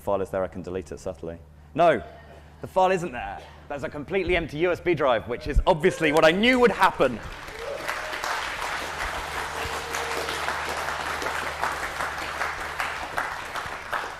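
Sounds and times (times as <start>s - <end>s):
speech: 0.0s - 7.6s
audience applause: 6.6s - 14.1s.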